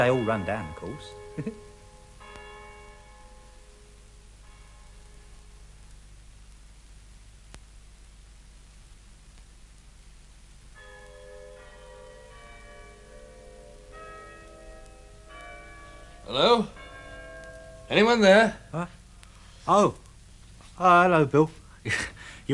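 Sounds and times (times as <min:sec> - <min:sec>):
speech: 0:00.0 - 0:01.6, 0:18.0 - 0:19.0, 0:19.7 - 0:20.0, 0:20.8 - 0:22.5
clock striking the hour: 0:00.0 - 0:05.6, 0:10.8 - 0:18.8
steady low hiss and hum: 0:00.0 - 0:22.5.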